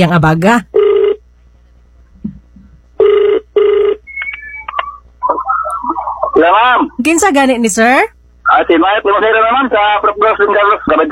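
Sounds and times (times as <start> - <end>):
speech: 0.0 - 0.7, 6.4 - 11.1
phone ringback tone on outgoing call: 0.8 - 1.2, 3.0 - 4.8
phone line beeps and tones: 4.0 - 5.9.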